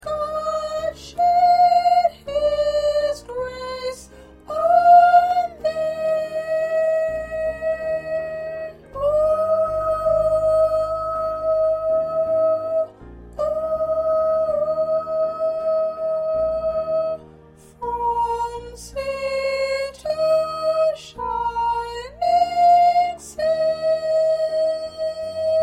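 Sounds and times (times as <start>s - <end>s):
first soprano singing: 0.0s - 25.6s.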